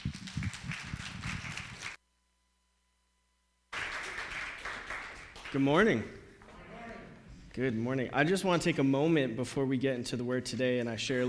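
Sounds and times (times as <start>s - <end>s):
audience clapping: 0.0s - 2.0s, 3.7s - 6.6s
speech: 5.5s - 6.2s, 7.6s - 11.2s.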